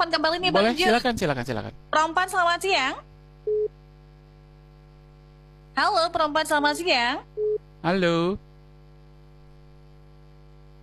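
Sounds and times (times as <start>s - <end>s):
speech: 0.0s - 3.7s, 5.8s - 8.4s
empty telephone line hum: 0.0s - 10.8s
short electronic telephone tone: 3.5s - 3.7s.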